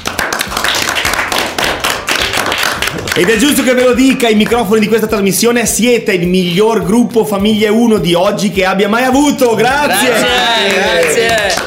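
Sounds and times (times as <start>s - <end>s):
studio guests applauding: 0.0s - 4.9s, 9.4s - 11.6s
speech: 3.2s - 11.6s.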